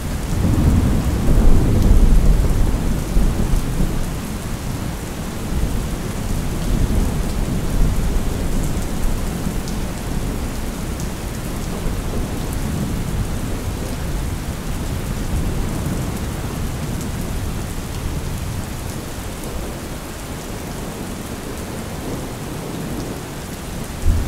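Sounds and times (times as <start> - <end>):
rain: 0.0 - 24.2
thunder: 0.3 - 4.3, 24.0 - 24.2.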